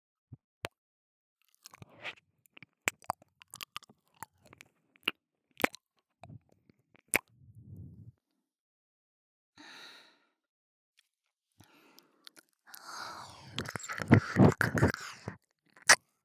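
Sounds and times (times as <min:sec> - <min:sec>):
kissing in the ear: 0:12.8 - 0:16.0.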